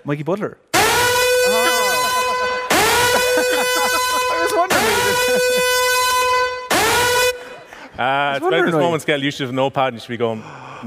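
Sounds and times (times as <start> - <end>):
speech: 0.0 - 0.7, 4.5 - 5.9, 8.0 - 10.8
siren: 0.8 - 7.5
laughter: 1.5 - 6.0, 7.3 - 9.1.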